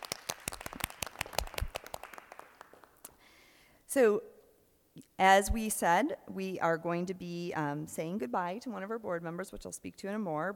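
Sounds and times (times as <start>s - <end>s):
small group clapping for teachers: 0.0s - 3.2s
speech: 3.9s - 4.3s, 5.0s - 10.5s.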